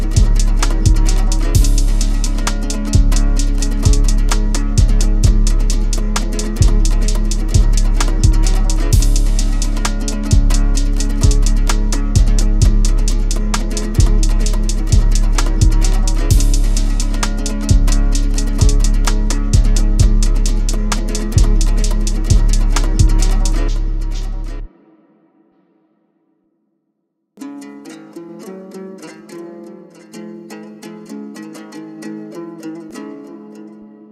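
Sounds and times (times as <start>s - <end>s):
Kyrgyz komuz remix: 0.0s - 24.8s.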